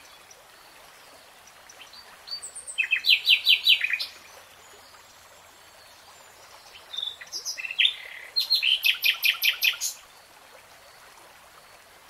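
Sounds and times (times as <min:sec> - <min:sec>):
nightingale singing: 0:02.3 - 0:04.2, 0:06.9 - 0:10.0.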